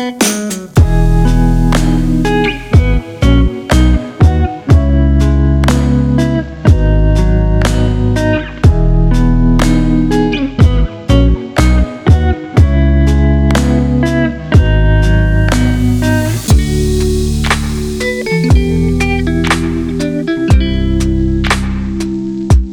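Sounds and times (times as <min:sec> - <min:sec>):
lo-fi grooves music: 0:00.0 - 0:22.7.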